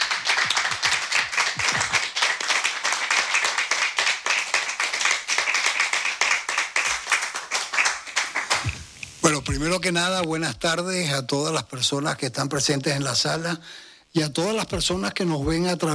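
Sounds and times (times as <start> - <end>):
audience applauding in a hall: 0.0 - 9.0
speech: 9.3 - 15.9.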